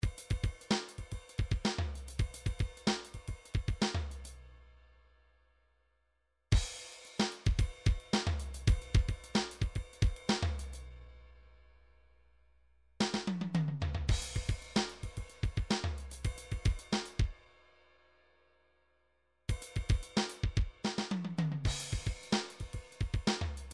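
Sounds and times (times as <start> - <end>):
midi drums: 0.0 - 4.3, 6.5 - 10.8, 13.0 - 17.4, 19.5 - 23.7.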